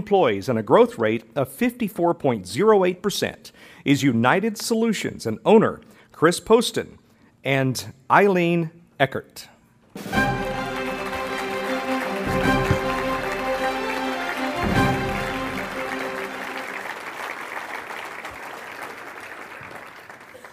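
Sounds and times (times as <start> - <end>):
speech: 0.0 - 10.2
audience applause: 10.1 - 20.5.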